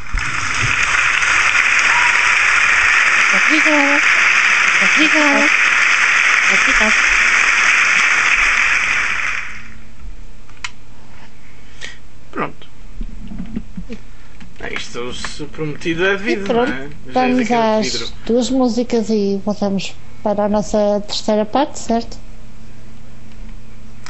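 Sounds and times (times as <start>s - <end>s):
audience applause: 0.0s - 9.8s
speech: 3.5s - 4.2s, 4.8s - 5.7s, 6.5s - 7.0s, 15.0s - 22.2s.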